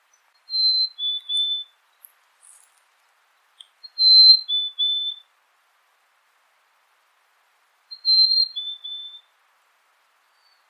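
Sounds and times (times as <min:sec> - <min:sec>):
unidentified bird call: 0:00.5 - 0:01.8, 0:03.6 - 0:05.2, 0:07.9 - 0:09.3.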